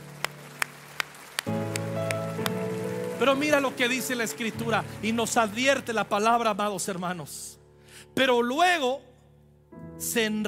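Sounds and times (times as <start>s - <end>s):
audience clapping in rhythm: 0.0s - 5.8s
speech: 3.2s - 9.1s, 10.0s - 10.4s.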